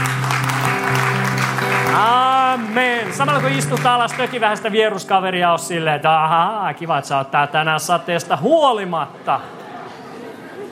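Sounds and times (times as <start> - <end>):
audience applause: 0.0 - 5.0
speech: 3.2 - 9.6.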